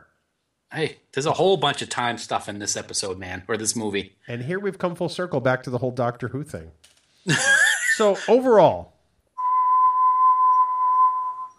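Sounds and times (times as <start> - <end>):
speech: 0.7 - 8.9
laughter: 7.3 - 8.4
person whistling high note: 9.4 - 11.5.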